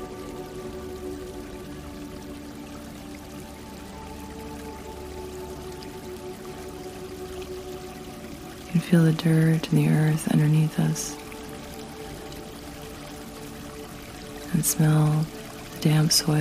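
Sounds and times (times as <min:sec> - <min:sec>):
water flowing over rocks: 0:00.0 - 0:16.3
speech: 0:08.8 - 0:11.2, 0:14.6 - 0:16.3.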